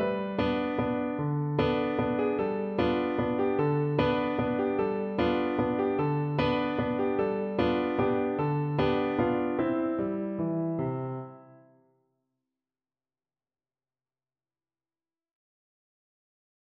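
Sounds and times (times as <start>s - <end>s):
piano: 0.0s - 11.9s.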